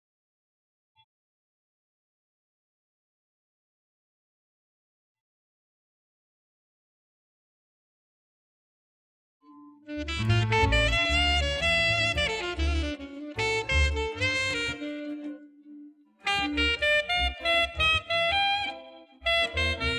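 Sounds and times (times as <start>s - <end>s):
saxophone: 9.9s - 19.9s.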